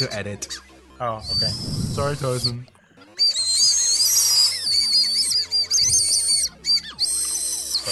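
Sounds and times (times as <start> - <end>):
speech: 0.0 - 2.8
toy whistles blown: 1.2 - 2.6, 3.2 - 7.9.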